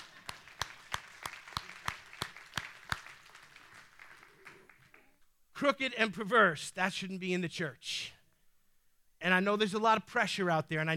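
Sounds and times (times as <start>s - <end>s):
person clapping: 0.0s - 5.2s
speech: 5.6s - 8.2s, 9.2s - 10.9s.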